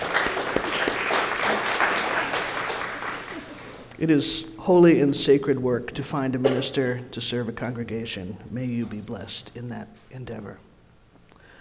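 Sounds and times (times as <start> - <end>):
audience applause: 0.0 - 3.7
speech: 4.0 - 10.7.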